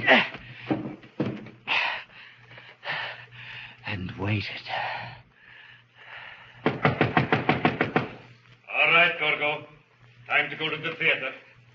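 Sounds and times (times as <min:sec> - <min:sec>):
faint steady hum: 0:00.0 - 0:11.7
heavy furniture shoved and stacked against a door: 0:00.5 - 0:01.6
speech: 0:04.4 - 0:05.2, 0:10.4 - 0:11.5.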